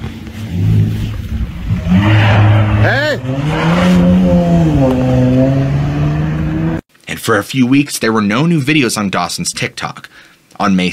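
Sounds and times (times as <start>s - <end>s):
car engine humming and revving: 0.5s - 6.8s
speech: 3.1s - 5.0s, 7.3s - 10.9s.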